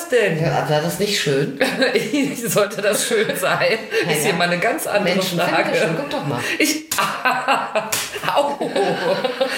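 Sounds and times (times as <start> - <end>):
speech: 0.1 - 9.5
laughter: 1.6 - 4.6, 5.4 - 9.5
slap on a person: 6.9 - 7.2, 7.9 - 8.2.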